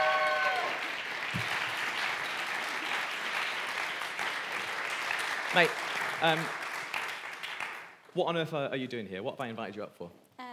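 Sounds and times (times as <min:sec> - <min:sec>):
audience round of applause: 0:00.0 - 0:08.0
speech: 0:05.5 - 0:06.6, 0:08.2 - 0:10.2.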